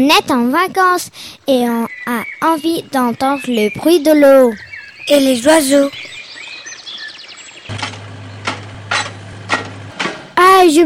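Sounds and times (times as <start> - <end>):
speech: 0.0 - 6.1, 10.6 - 10.8
hammering: 7.7 - 10.4.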